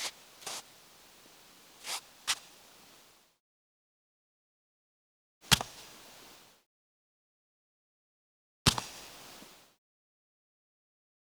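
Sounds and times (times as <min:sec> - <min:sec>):
footsteps: 0:00.0 - 0:00.7, 0:01.8 - 0:02.4.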